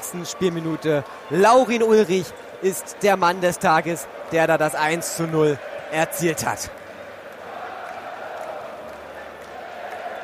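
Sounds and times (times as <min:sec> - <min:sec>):
stadium crowd cheering after goal: 0:00.0 - 0:10.2
speech: 0:00.1 - 0:06.8.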